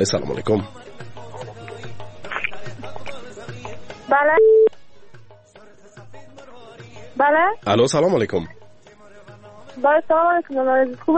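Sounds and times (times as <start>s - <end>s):
speech: 0.0s - 1.0s, 4.1s - 4.6s, 7.2s - 8.6s, 9.8s - 11.1s
loud telephone beep: 4.3s - 4.8s.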